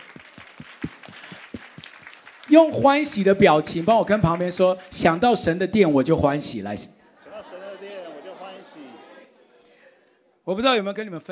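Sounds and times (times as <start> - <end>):
audience clapping hands: 0.0 - 5.3
speech: 2.5 - 7.0, 10.5 - 11.3
laughter: 7.0 - 10.2.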